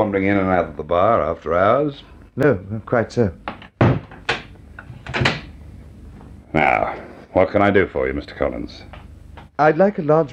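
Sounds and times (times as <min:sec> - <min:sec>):
speech: 0:00.0 - 0:03.5, 0:06.6 - 0:09.0, 0:09.6 - 0:10.3
bar door shut after hours: 0:03.6 - 0:05.5.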